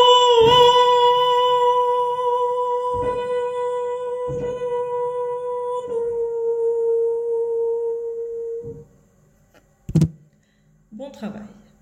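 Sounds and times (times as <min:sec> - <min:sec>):
soprano voice: 0:00.0 - 0:08.8.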